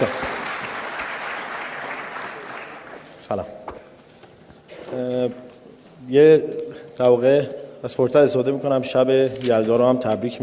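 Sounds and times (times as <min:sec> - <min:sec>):
audience applause: 0:00.0 - 0:03.2
speech: 0:03.3 - 0:03.6, 0:04.9 - 0:10.4.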